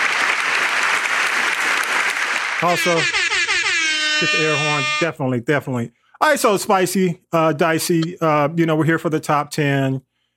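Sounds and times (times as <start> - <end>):
applause: 0.0 - 3.1
speech: 2.6 - 3.2, 4.2 - 10.1.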